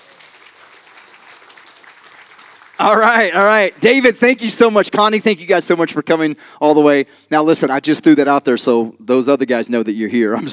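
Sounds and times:
audience clapping hands in praise: 0.0s - 4.4s
speech: 2.8s - 10.5s.

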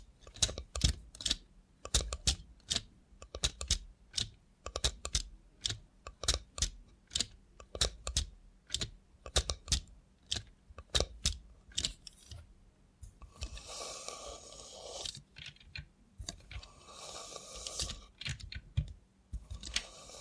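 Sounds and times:
sharp clicking taps from a robot hand: 0.3s - 12.0s, 18.2s - 19.8s
steady hiss with a whirring tone: 13.3s - 15.2s, 16.6s - 18.1s, 19.6s - 20.2s.

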